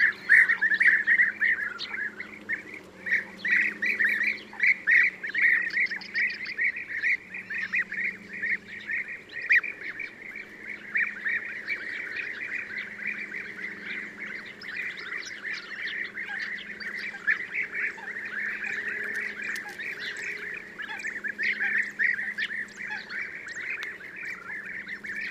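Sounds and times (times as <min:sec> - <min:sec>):
European bee-eater giving trilled liquid calls: 0:00.0 - 0:25.3.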